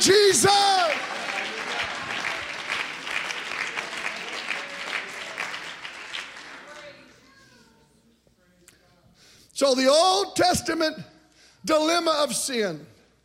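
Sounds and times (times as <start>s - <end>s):
audience clapping hands: 0.0s - 7.1s
speech: 9.6s - 12.9s.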